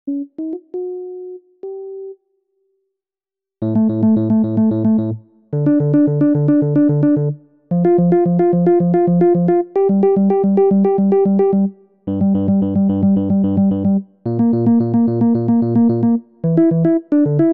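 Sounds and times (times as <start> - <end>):
synth: 3.6 - 17.5.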